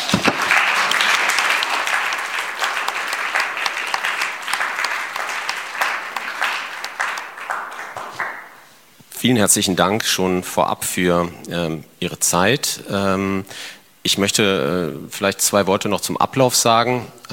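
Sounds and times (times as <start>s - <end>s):
audience applause: 0.0s - 8.7s
speech: 9.2s - 17.3s.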